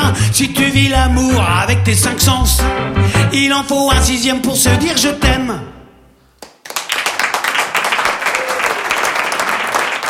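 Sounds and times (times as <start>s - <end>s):
speech: 0.3s - 5.8s
audience applause: 6.4s - 10.0s.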